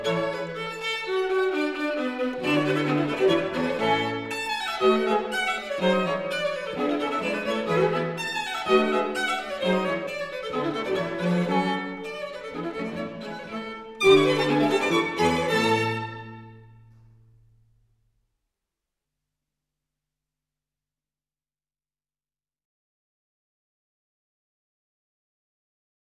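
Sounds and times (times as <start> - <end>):
string quartet playing an allegro rondo in A major: 0.0 - 17.2.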